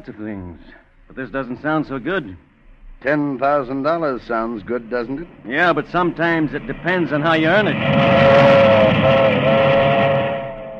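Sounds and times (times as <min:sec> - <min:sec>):
speech: 0:00.0 - 0:10.1
passing milk train: 0:04.1 - 0:10.7.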